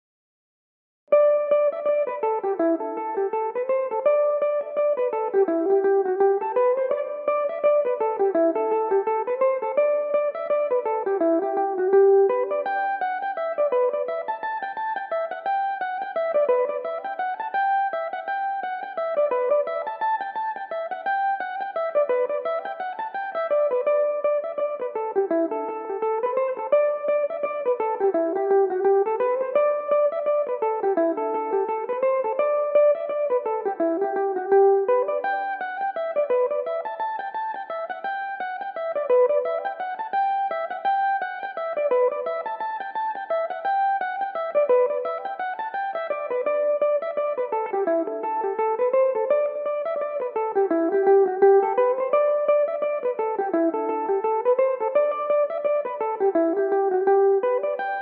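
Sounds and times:
Irish mandolin tunes in G major: 1.1 - 58.0.

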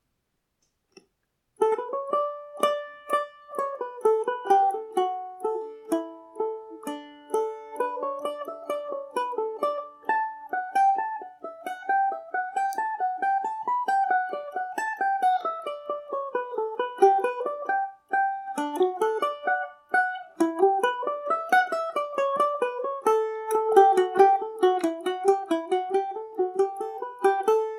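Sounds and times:
Irish mandolin playing in D major: 1.6 - 27.7.

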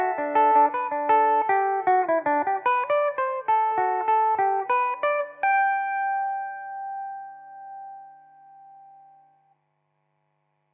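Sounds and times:
Irish mandolin in G major: 0.0 - 8.1.

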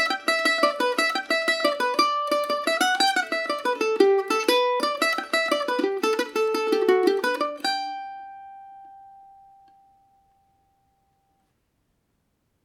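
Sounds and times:
G major Paris swing on Irish mandolin: 0.0 - 9.6.

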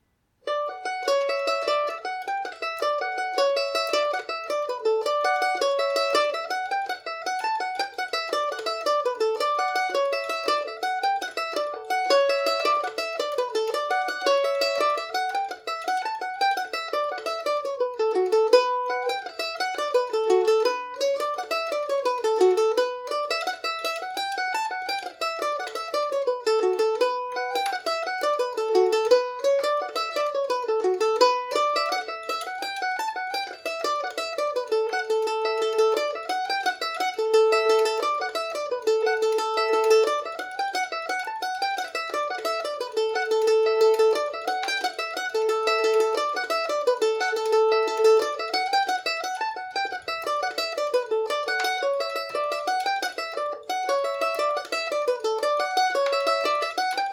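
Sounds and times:
Irish mandolin playing in D major: 0.0 - 57.1.

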